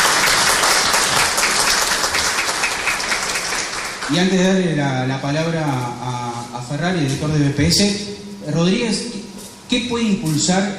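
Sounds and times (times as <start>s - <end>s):
applause at an official public presentation: 0.0s - 4.3s
speech: 4.1s - 9.1s, 9.7s - 10.7s.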